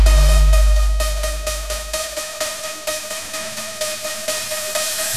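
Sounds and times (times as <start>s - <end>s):
epic bass drop symphony ringtone: 0.0s - 2.4s.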